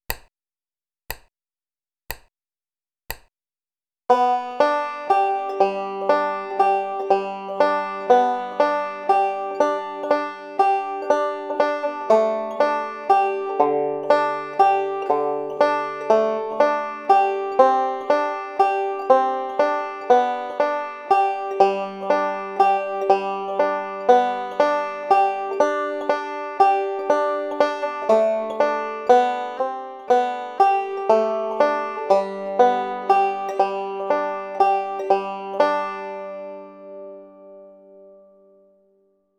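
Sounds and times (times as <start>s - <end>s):
folk song: 4.1s - 38.2s.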